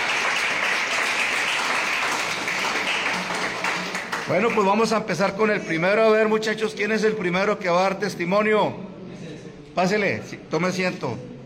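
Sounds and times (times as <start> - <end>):
audience applause: 0.0 - 4.9
speech: 4.3 - 8.8, 9.8 - 11.3.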